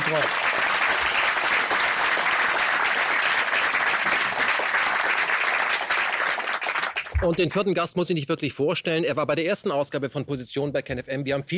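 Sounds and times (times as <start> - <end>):
audience applause: 0.0 - 7.5
speech: 0.1 - 0.5, 7.2 - 11.5.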